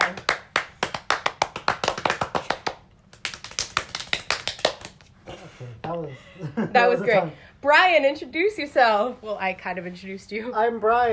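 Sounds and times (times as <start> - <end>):
small round of applause: 0.0 - 5.0
speech: 5.6 - 11.1.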